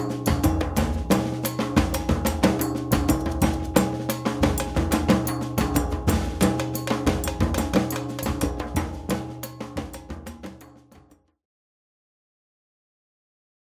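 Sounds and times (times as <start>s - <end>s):
groove music: 0.0s - 10.6s.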